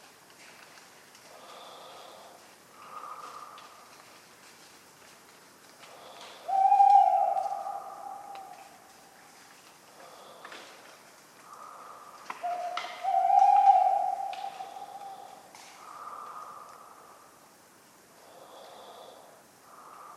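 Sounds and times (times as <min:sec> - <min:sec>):
tawny owl hoot: 0:06.0 - 0:09.2, 0:11.5 - 0:16.6.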